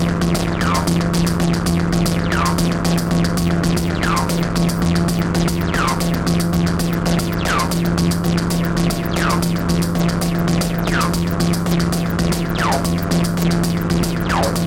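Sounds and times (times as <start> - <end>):
grotesque dark distorted tekk noise jam on Analog Rytm: 0.0 - 14.6.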